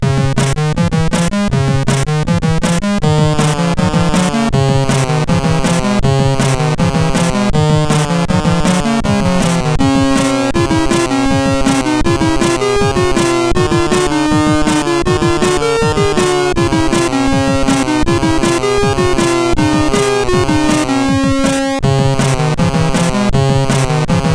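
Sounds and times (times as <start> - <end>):
SID chiptune music on a CSG8580R5 chip: 0.0 - 24.3.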